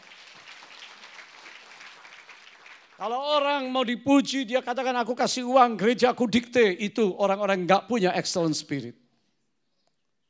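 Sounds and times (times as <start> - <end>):
audience applause: 0.0 - 3.2
speech: 3.0 - 9.0.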